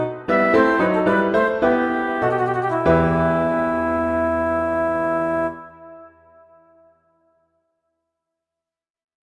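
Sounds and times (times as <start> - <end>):
allegro classical piece: 0.0 - 6.1.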